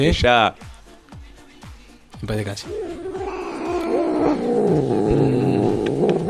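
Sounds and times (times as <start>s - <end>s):
speech: 0.0s - 0.7s, 2.2s - 3.0s
cat growling: 2.6s - 6.2s.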